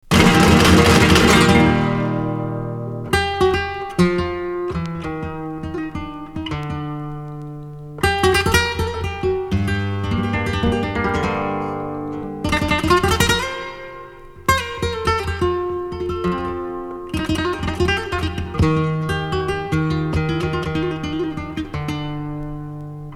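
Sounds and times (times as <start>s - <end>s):
gypsy guitar music: 0.0s - 23.1s.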